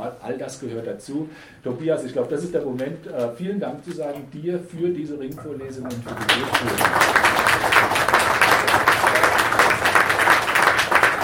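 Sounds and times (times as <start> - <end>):
speech: 0.1 - 7.3
loud clapping: 5.9 - 11.2.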